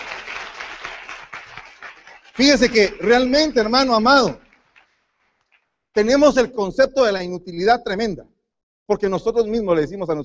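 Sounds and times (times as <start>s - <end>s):
crowd applause: 0.0s - 5.7s
speech: 2.4s - 4.4s, 6.0s - 8.3s, 8.9s - 10.2s.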